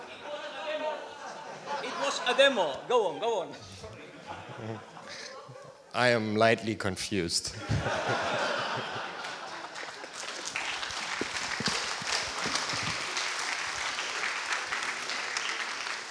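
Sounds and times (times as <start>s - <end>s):
people chuckling: 0.0s - 5.8s, 7.5s - 13.1s
speech: 2.2s - 3.8s, 4.6s - 5.2s, 6.0s - 8.4s
audience applause: 7.9s - 16.0s.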